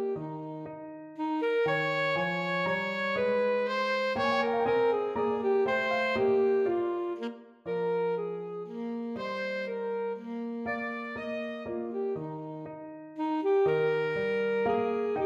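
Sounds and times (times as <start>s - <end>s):
saxophone playing a dance piece: 0.0s - 15.2s.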